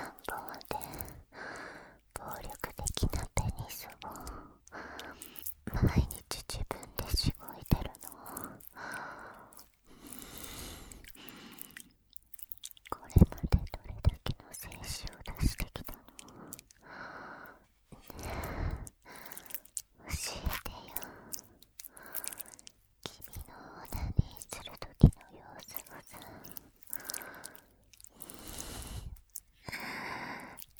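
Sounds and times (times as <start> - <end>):
binaural person whispering: 0.0 - 11.9, 12.8 - 30.7
ear licking in the left ear: 0.0 - 30.7
person breathing heavily: 0.8 - 2.1, 4.1 - 5.6, 8.0 - 11.9, 16.1 - 19.8, 20.9 - 22.7, 25.8 - 30.7.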